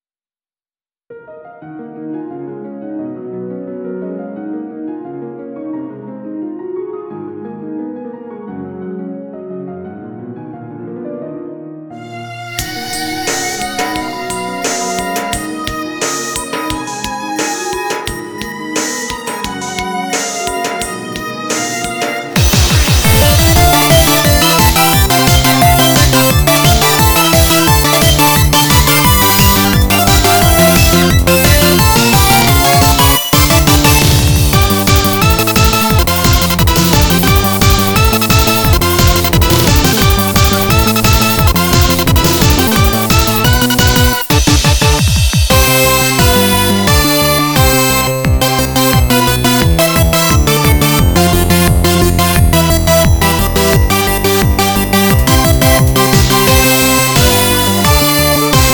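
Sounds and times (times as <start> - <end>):
off vocal instrumental music: 11.9 - 58.7.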